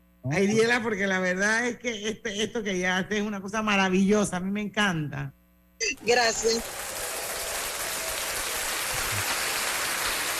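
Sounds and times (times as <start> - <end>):
speech: 0.2 - 7.0
applause sound effect: 6.1 - 10.3.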